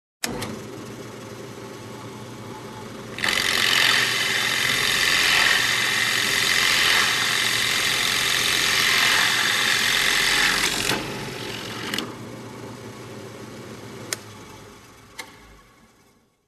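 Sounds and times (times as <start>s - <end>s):
construction noise: 3.1s - 12.2s.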